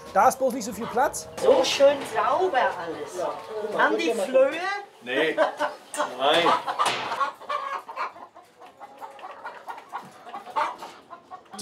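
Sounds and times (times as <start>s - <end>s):
chickens clucking in a henhouse: 0.0s - 11.6s
speech: 0.1s - 7.2s.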